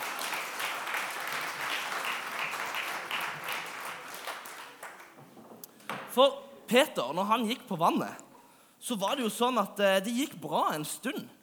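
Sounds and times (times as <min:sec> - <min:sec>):
room full of people applauding: 0:00.0 - 0:05.2
speech: 0:06.2 - 0:08.2, 0:08.8 - 0:11.4.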